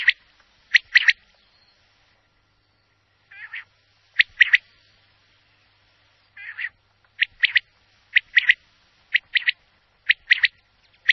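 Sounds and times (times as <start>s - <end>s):
lesser kestrel calls: 0.0s - 2.0s, 2.6s - 5.1s, 6.2s - 11.1s.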